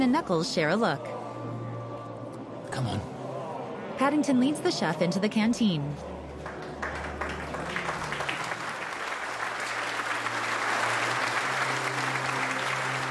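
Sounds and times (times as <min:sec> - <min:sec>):
speech: 0:00.0 - 0:01.2, 0:02.7 - 0:03.1, 0:04.0 - 0:06.2
prisoners clapping in a prison canteen: 0:06.2 - 0:13.0.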